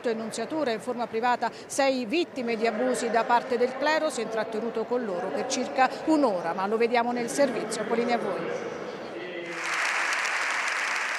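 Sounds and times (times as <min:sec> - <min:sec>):
speech: 0:00.0 - 0:08.9
parliament applause: 0:09.4 - 0:11.1.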